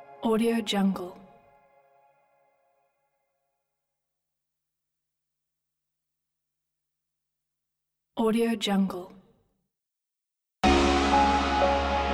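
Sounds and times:
meditation music: 0:00.0 - 0:03.4, 0:10.6 - 0:12.1.

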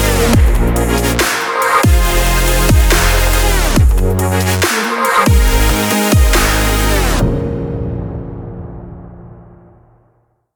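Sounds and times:
future bass music: 0:00.0 - 0:07.4.

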